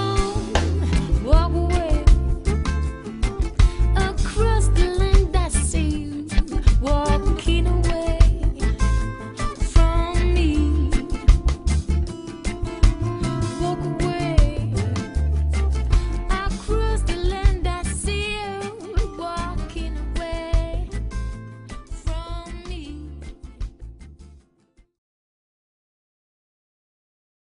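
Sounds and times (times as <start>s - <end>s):
jazz bass: 0.0s - 24.4s.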